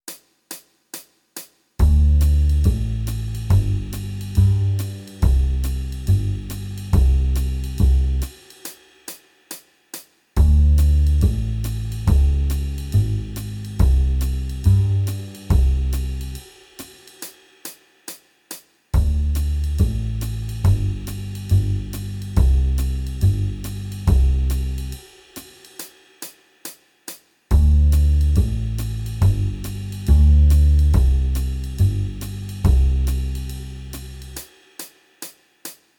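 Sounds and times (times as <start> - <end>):
jazz backing music: 1.8 - 8.3, 10.4 - 16.4, 19.0 - 25.0, 27.5 - 34.4.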